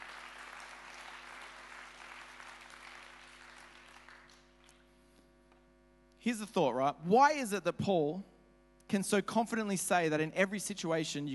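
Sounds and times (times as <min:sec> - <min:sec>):
audience clapping: 0:00.0 - 0:05.0
speech: 0:06.2 - 0:08.3, 0:08.9 - 0:11.3.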